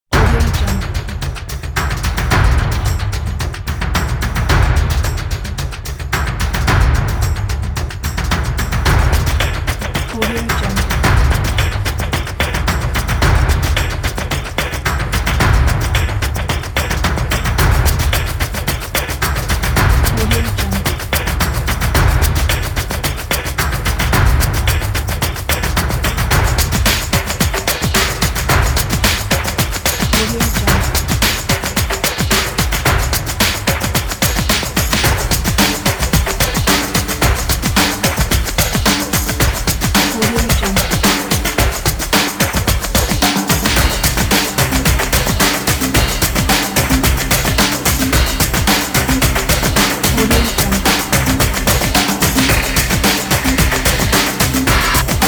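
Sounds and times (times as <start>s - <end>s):
fashionable drums: 0.0s - 55.2s.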